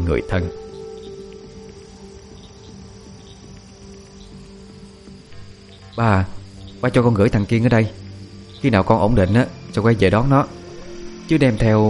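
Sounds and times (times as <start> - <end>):
speech: 0.0 - 0.7, 6.0 - 8.0, 8.6 - 10.6, 11.3 - 11.8
frogs and toads croaking at night: 0.0 - 11.8.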